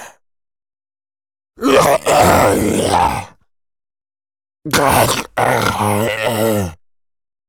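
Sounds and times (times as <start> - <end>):
huge male zombie getting hit: 1.6 - 3.3, 4.7 - 6.8.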